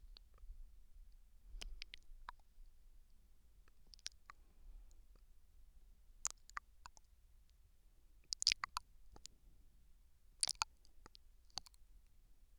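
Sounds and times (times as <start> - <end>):
gentle nibbling on the left ear: 0.1 - 0.4, 1.1 - 2.6, 3.6 - 5.3, 6.2 - 7.6, 8.2 - 9.4, 10.4 - 11.9.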